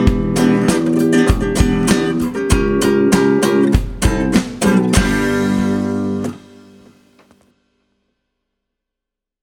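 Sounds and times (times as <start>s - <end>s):
bass: 0.0s - 6.9s.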